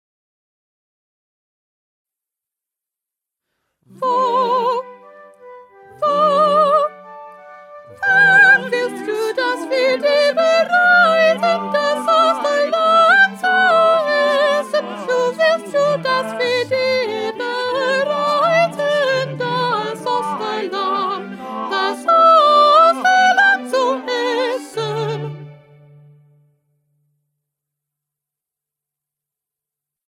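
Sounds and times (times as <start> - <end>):
soprano singing: 3.9 - 26.0.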